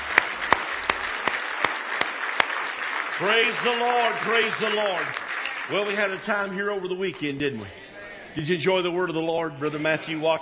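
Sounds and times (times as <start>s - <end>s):
audience hand clapping on a steady beat: 0.0s - 6.5s
speech: 3.2s - 10.4s.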